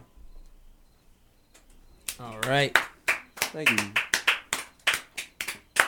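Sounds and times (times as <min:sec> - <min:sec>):
hand claps: 0:02.0 - 0:05.8
speech: 0:02.6 - 0:02.8.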